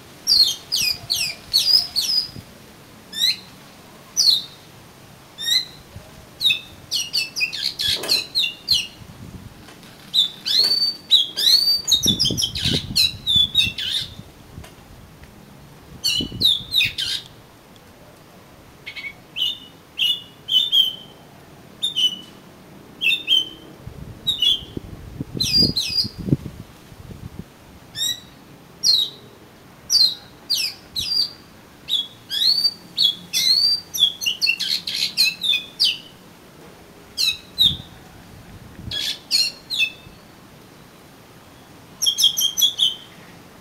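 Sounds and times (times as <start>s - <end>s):
Oriental magpie-robin singing: 0.3s - 2.4s, 3.1s - 3.6s, 4.2s - 4.7s, 5.4s - 9.0s, 10.1s - 14.2s, 16.0s - 17.3s, 18.8s - 21.2s, 21.8s - 22.4s, 23.0s - 23.6s, 24.3s - 24.8s, 25.4s - 26.2s, 28.0s - 29.3s, 29.9s - 36.2s, 37.2s - 38.0s, 38.9s - 40.9s, 41.5s - 43.6s.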